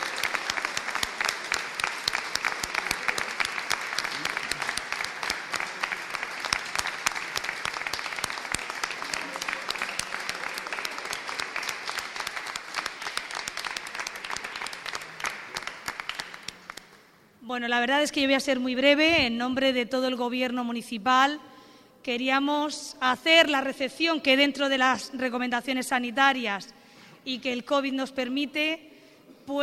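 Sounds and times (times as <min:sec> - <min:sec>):
loud applause from a large crowd: 0:00.0 - 0:17.0
speech: 0:17.6 - 0:28.9.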